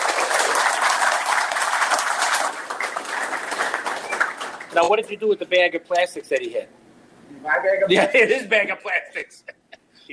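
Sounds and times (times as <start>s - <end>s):
round of applause: 0.0s - 4.8s
speech: 4.8s - 6.8s, 7.4s - 10.1s.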